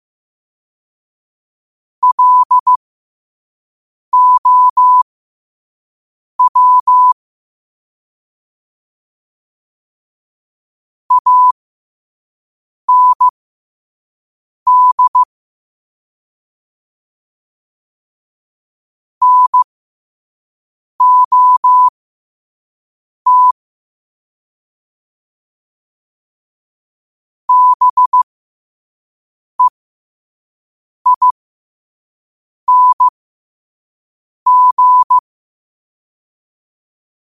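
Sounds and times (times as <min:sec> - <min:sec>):
morse code at 5 wpm: 0:02.0 - 0:02.8, 0:04.2 - 0:05.0, 0:06.4 - 0:07.2, 0:11.1 - 0:11.6, 0:12.9 - 0:13.3, 0:14.7 - 0:15.3, 0:19.2 - 0:19.7, 0:21.0 - 0:21.9, 0:23.3 - 0:23.6, 0:27.5 - 0:28.3, 0:31.1 - 0:31.4, 0:32.7 - 0:33.1, 0:34.5 - 0:35.2.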